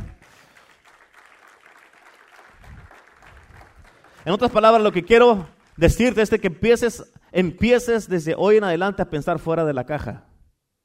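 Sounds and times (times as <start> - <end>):
audience applauding: 0.0 - 6.5
speech: 4.2 - 10.3.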